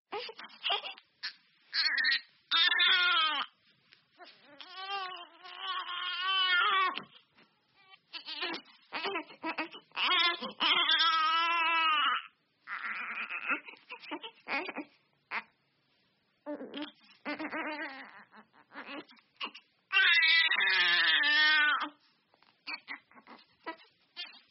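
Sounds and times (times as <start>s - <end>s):
baby crying in a nursery: 0.1s - 3.5s, 4.4s - 7.1s, 8.0s - 15.5s, 16.5s - 22.0s.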